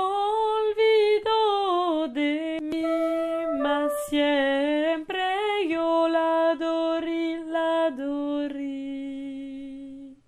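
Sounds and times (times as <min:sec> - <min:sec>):
mezzo-soprano singing: 0:00.0 - 0:10.2.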